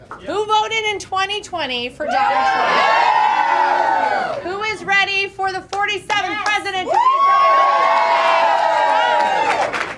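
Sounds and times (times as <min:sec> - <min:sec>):
speech: 0:00.2 - 0:08.4
large crowd cheering: 0:02.1 - 0:04.5, 0:06.3 - 0:09.9.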